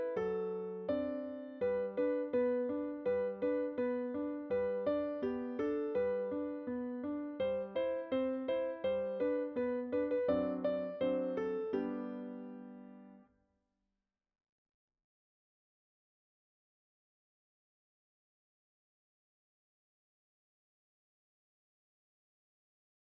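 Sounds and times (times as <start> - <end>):
piano: 0.0 - 13.3.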